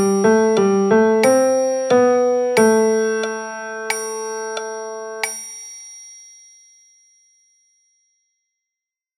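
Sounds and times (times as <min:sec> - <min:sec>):
piano music: 0:00.0 - 0:05.4.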